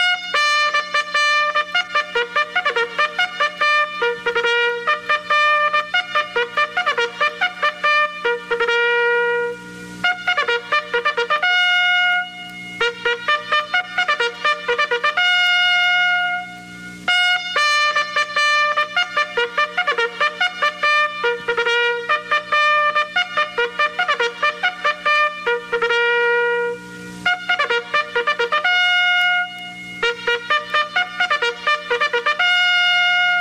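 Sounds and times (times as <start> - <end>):
war attack charge call on trumpet: 0.0 - 33.3.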